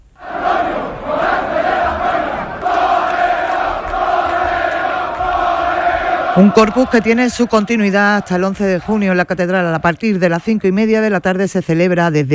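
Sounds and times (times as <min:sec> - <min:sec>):
street crowd in Seville clamoring as bullfighter Morante de la Puebla is carried: 0:00.1 - 0:10.0
speech: 0:06.4 - 0:12.3.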